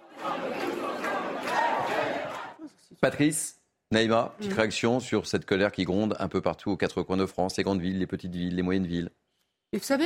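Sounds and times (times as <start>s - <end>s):
protesters chanting slogans in a shopping centre: 0.0s - 2.6s
speech: 2.6s - 10.0s.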